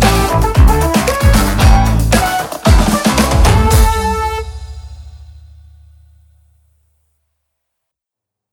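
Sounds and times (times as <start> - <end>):
funny funk music: 0.0 - 5.7.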